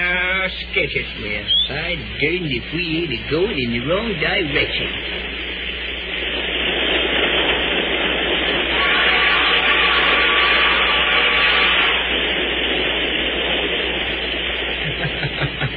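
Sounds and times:
passenger train running: 0.0s - 15.7s
speech: 0.8s - 5.4s
laughter: 14.8s - 15.7s.

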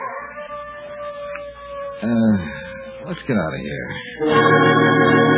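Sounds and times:
dog howling: 0.0s - 3.2s
speech: 2.0s - 5.2s.

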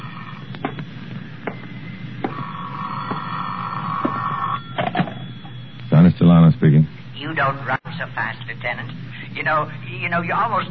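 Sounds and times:
telephone ringing: 0.0s - 6.0s
speech: 6.1s - 10.6s.

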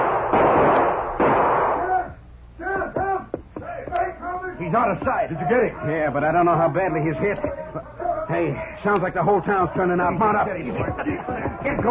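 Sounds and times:
gunshot: 0.0s - 2.0s
speech: 4.7s - 11.8s.

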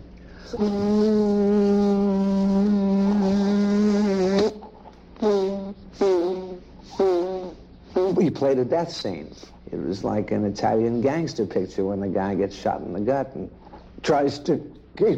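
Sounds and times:
voice imitating a buzzing mosquito: 0.4s - 8.6s
speech: 0.5s - 1.7s, 8.4s - 15.1s.

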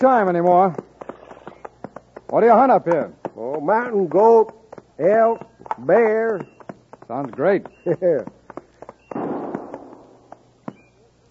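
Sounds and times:
speech: 0.0s - 0.9s, 2.3s - 8.4s
sharp pops: 0.8s - 10.9s
gunshot: 9.1s - 10.2s.

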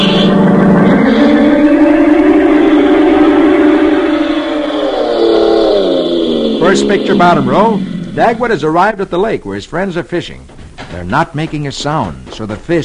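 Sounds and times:
car driving off: 0.2s - 8.7s
speech: 6.7s - 12.8s.

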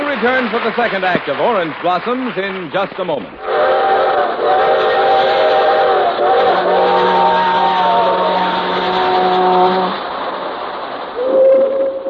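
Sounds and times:
speech: 0.2s - 3.7s
freight train whistles: 3.4s - 10.1s, 11.2s - 12.0s.

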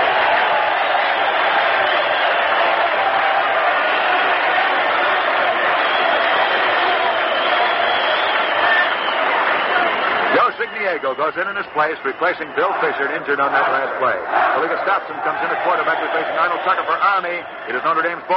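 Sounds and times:
stadium crowd applauding injured football player: 0.0s - 18.3s
speech: 11.0s - 18.3s.

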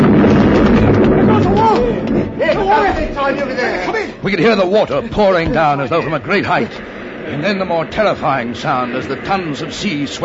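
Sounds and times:
dynamite explosion: 0.0s - 10.2s
speech: 4.2s - 10.2s.

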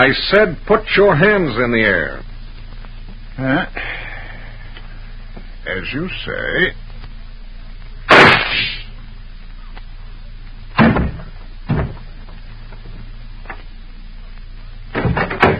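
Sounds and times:
speech: 0.0s - 2.3s, 3.4s - 4.0s, 5.7s - 6.8s
gunshot: 8.1s - 8.9s
dull thumps and knocks: 10.8s - 12.1s, 14.9s - 15.5s.

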